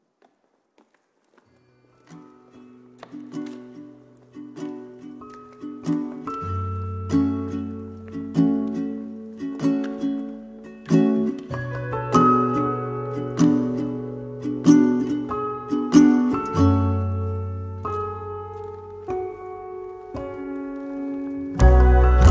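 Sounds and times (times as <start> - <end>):
slowed reverb music: 5.4 - 22.2.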